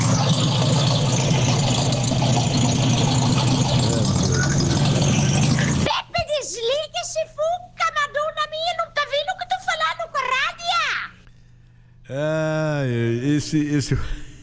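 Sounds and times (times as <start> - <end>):
old VW Beetle engine idling: 0.0 - 5.9
people talking: 3.8 - 11.1, 12.1 - 14.2.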